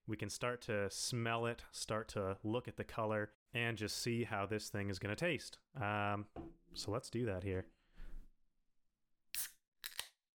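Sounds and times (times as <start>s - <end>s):
speech: 0.1s - 7.8s
beer can cracking open: 9.4s - 10.2s.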